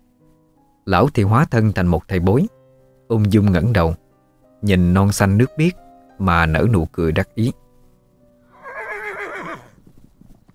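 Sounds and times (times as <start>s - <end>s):
speech: 0.9s - 4.0s, 4.6s - 7.6s
horse whinnying: 8.5s - 9.8s.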